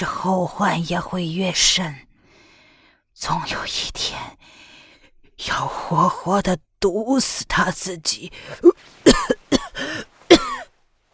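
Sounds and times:
speech: 0.0s - 2.0s, 3.2s - 4.6s, 5.4s - 9.3s
violent coughing fit: 9.0s - 10.7s.

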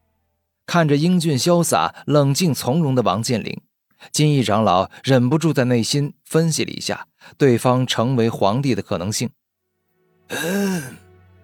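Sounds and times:
speech: 0.7s - 9.4s, 10.3s - 11.0s
throat clearing: 10.3s - 11.0s.

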